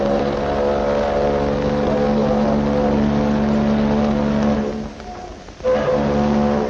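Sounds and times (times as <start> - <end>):
tender boat's farewell horn salute: 0.0 - 6.6.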